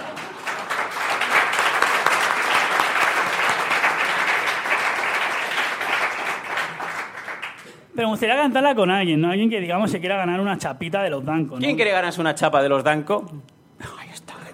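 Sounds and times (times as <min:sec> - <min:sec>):
audience applause: 0:00.0 - 0:07.8
speech: 0:08.0 - 0:13.5.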